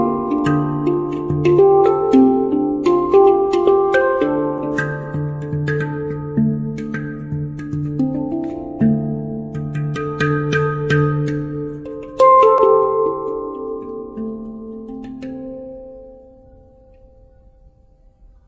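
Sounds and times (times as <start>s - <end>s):
handpan notes: 0.0s - 18.4s.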